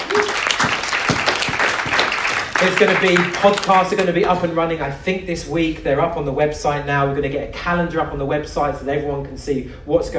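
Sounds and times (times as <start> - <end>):
audience applause: 0.0 - 4.2
speech: 2.6 - 10.1.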